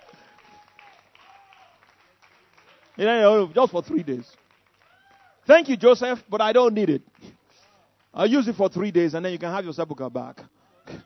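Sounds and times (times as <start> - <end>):
audience applauding: 0.0 - 5.8
speech: 3.0 - 4.4, 5.5 - 7.2, 8.2 - 11.0.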